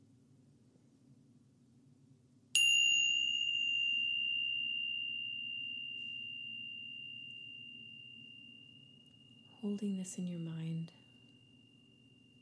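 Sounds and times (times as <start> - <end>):
meditation chime ringing: 2.6 - 12.4
speech: 9.6 - 11.0.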